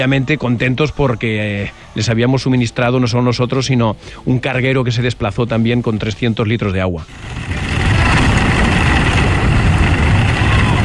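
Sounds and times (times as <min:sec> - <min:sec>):
speech: 0:00.0 - 0:07.6
waves of a rough sea: 0:07.1 - 0:10.8.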